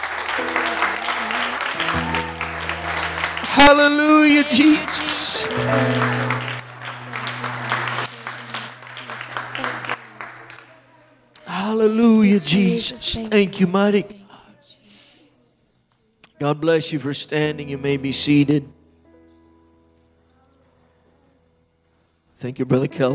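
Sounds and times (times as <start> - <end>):
audience applauding: 0.0 - 10.9
speech: 3.6 - 6.6, 11.7 - 14.2, 16.4 - 18.8, 22.4 - 23.1.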